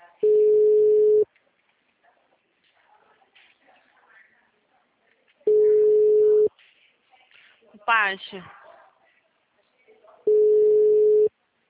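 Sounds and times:
telephone ringing tone of an unanswered call: 0.2 - 1.2, 5.5 - 6.5, 10.3 - 11.3
speech: 7.9 - 8.6.

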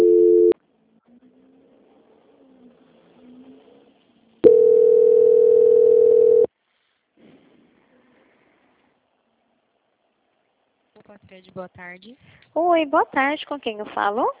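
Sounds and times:
telephone buzzing tone during call transfer: 0.0 - 0.6, 4.4 - 6.5
speech: 11.5 - 14.3.

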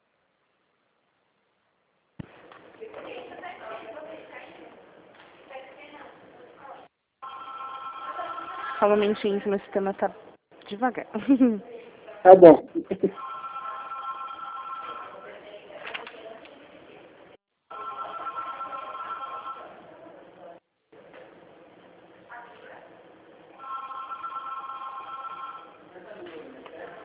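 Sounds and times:
telephone ringing: 7.2 - 8.9, 13.2 - 15.3, 17.7 - 19.8, 23.6 - 25.9
speech: 8.8 - 13.3.

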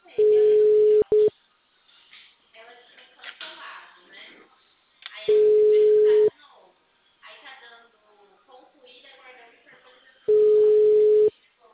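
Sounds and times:
people talking: 0.0 - 1.3, 2.6 - 11.7
telephone ringback tone: 0.2 - 1.3, 5.3 - 6.3, 10.3 - 11.3.

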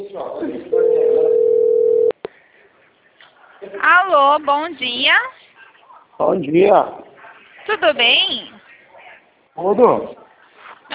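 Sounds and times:
telephone dial tone while placing a call: 0.8 - 2.2
speech: 3.9 - 5.4, 6.2 - 7.1, 7.7 - 8.6, 9.6 - 10.2.

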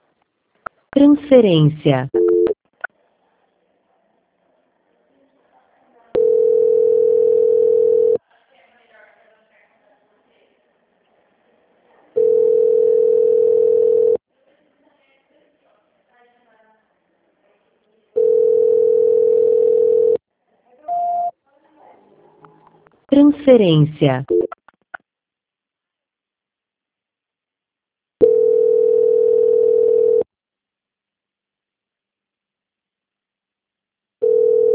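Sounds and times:
faint noise: 0.0 - 34.7
speech: 1.0 - 2.2, 23.6 - 24.4
telephone tone beeps after a dropped call: 2.1 - 2.6, 6.2 - 8.2, 12.2 - 14.2, 18.2 - 20.2, 20.9 - 21.3, 24.1 - 24.6, 28.2 - 30.2, 34.2 - 34.7.

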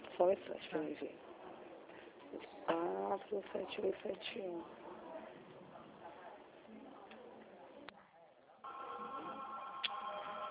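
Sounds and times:
speech: 0.2 - 1.4, 2.3 - 4.8
telephone ringing: 8.7 - 10.4.

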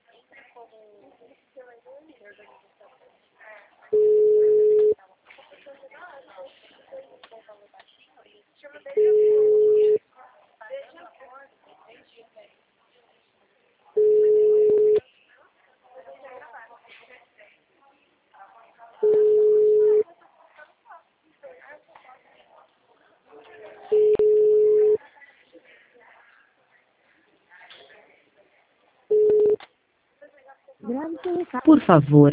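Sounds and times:
phone call ringback tone: 3.9 - 4.9, 9.0 - 10.0, 14.0 - 15.0, 19.1 - 20.1, 23.9 - 25.0
speech: 31.0 - 32.3.

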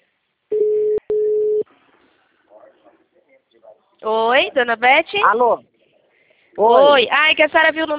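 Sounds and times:
telephone line tone: 0.5 - 1.6
speech: 4.0 - 5.7, 6.6 - 7.9.

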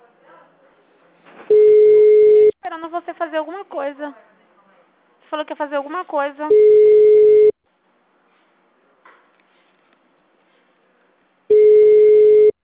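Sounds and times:
telephone line tone beeps while a call is placed: 1.5 - 2.5, 6.5 - 7.5, 11.5 - 12.6
speech: 2.8 - 4.3, 5.3 - 6.9.

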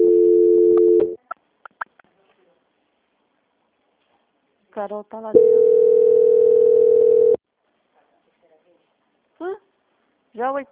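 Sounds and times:
telephone ringing tone during call transfer: 0.0 - 1.2, 5.4 - 7.4
speech: 4.8 - 6.2, 10.4 - 10.7.

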